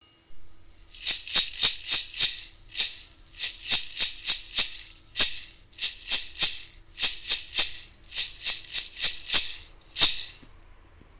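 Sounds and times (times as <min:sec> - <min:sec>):
maracas: 0:00.8 - 0:10.6.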